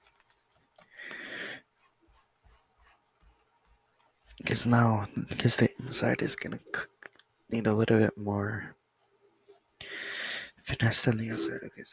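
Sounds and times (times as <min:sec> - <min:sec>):
eraser rubbing out a drawn line: 0:01.6 - 0:04.6
speech: 0:04.4 - 0:06.9, 0:07.5 - 0:08.8, 0:10.7 - 0:11.9.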